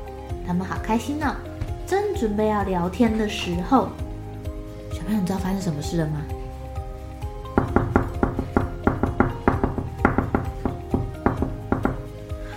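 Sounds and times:
speech: 0:00.5 - 0:04.0, 0:04.9 - 0:06.4
knocking on a door: 0:07.5 - 0:12.1.

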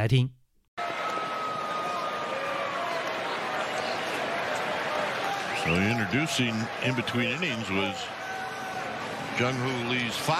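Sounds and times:
speech: 0:00.0 - 0:00.4, 0:05.6 - 0:08.2, 0:09.4 - 0:10.3
stadium crowd applauding and cheering: 0:00.8 - 0:10.3.

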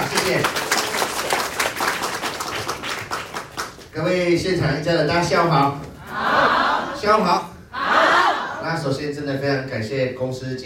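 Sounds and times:
applause: 0:00.0 - 0:03.9
speech: 0:00.3 - 0:00.6, 0:04.0 - 0:06.3, 0:07.0 - 0:07.5, 0:08.6 - 0:10.6.

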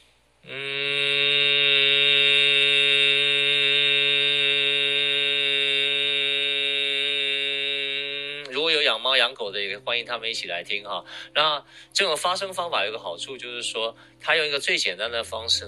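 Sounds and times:
closed-mouth humming for head resonance: 0:00.0 - 0:08.7
speech: 0:08.9 - 0:15.6.

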